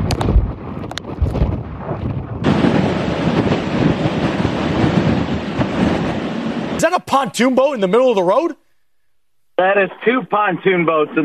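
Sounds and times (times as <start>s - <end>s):
powerful hurricane wind gusts: 0.0s - 8.5s
speech: 7.1s - 8.6s, 9.6s - 11.2s.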